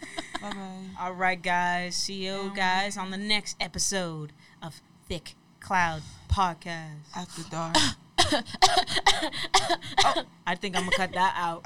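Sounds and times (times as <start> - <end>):
speech: 0.4 - 11.6
person coughing: 7.7 - 11.1.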